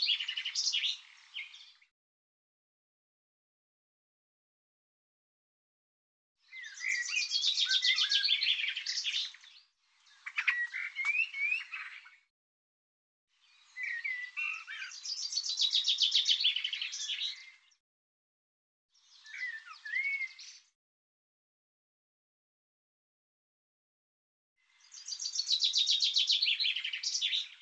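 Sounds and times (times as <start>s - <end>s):
small bird singing: 0.0s - 1.9s, 6.4s - 12.3s, 13.3s - 17.8s, 18.9s - 20.8s, 24.6s - 27.5s.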